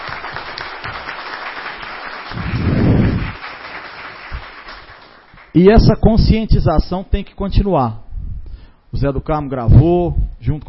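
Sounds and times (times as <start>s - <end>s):
round of applause: 0.0s - 5.5s
speech: 5.6s - 8.0s, 8.9s - 10.6s.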